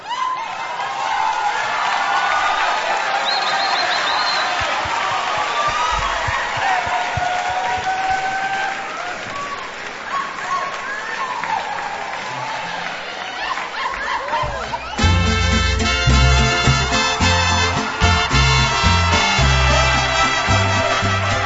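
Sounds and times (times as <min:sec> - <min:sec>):
audience applause: 0:00.0 - 0:21.4
laughter: 0:12.3 - 0:15.3.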